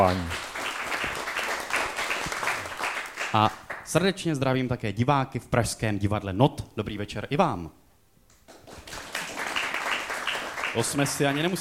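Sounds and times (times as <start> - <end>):
speech: 0.0 - 0.4, 3.3 - 7.8, 10.8 - 11.5
audience applause: 0.0 - 3.8, 8.5 - 11.5.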